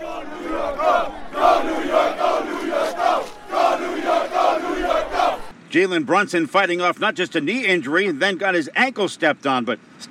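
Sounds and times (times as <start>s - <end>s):
thousands cheering at a street watch party on 7th Avenue: 0.0s - 5.6s
speech: 5.8s - 10.0s.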